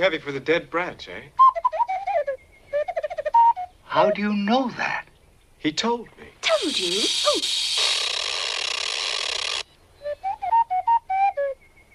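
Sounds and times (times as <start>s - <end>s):
speech: 0.0s - 1.4s, 3.9s - 7.7s
mechanical owl whistling: 1.4s - 4.4s, 6.4s - 11.9s
mechanical whirring: 6.4s - 9.7s.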